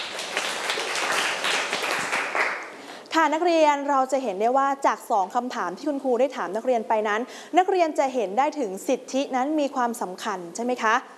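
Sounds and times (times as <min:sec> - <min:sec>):
students clapping: 0:00.0 - 0:02.8
speech: 0:03.2 - 0:11.1.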